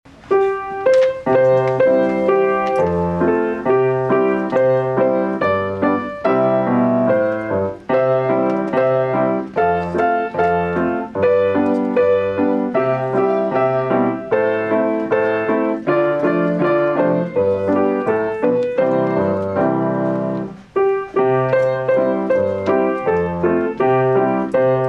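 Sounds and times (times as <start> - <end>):
piano duet: 0.1 - 24.8.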